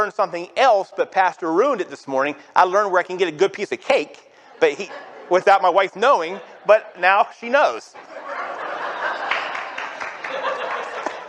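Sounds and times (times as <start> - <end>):
speech: 0.0 - 8.2
audience laughter: 4.4 - 7.0, 7.8 - 11.2
audience clapping: 9.0 - 11.2.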